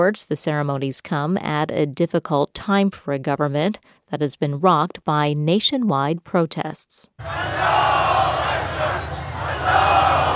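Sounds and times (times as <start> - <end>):
speech: 0.0 - 8.0
crowd chanting in Tehran: 7.2 - 10.3.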